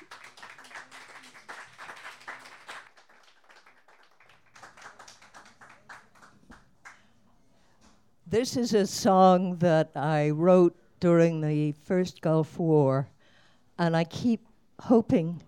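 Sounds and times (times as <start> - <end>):
audience applause welcoming a songwriter and poet at a small live performance: 0.0 - 6.6
speech: 8.3 - 13.1, 13.8 - 15.4.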